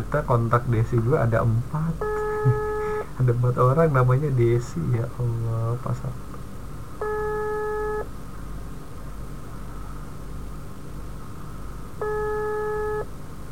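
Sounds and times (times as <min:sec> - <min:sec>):
low constant hiss: 0:00.0 - 0:13.4
speech: 0:00.1 - 0:06.3
phone ringback tone: 0:02.0 - 0:03.0, 0:07.0 - 0:08.0, 0:12.0 - 0:13.1.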